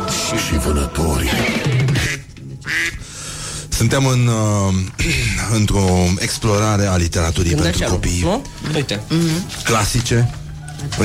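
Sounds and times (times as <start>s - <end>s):
speech: 0.3s - 1.6s, 3.8s - 11.0s
ducks quacking: 1.2s - 3.0s.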